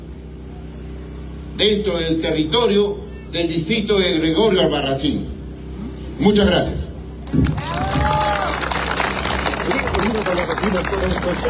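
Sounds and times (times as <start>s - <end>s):
speech: 1.6s - 5.3s, 6.2s - 7.9s, 10.2s - 11.4s
audience applauding: 7.2s - 11.4s.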